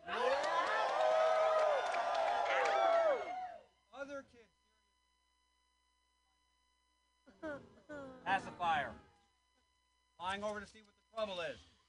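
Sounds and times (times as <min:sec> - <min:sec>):
audience cheering and celebrating during a participatory show: 0:00.0 - 0:03.6
people shouting and whooping: 0:00.0 - 0:03.6
speech: 0:10.6 - 0:11.7.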